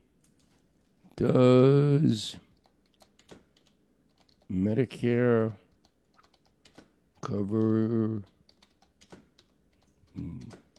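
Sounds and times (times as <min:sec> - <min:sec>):
speech: 0:01.2 - 0:02.5, 0:04.5 - 0:05.6, 0:07.2 - 0:08.3
typing on a computer keyboard with one hand: 0:02.5 - 0:04.6, 0:05.6 - 0:10.7.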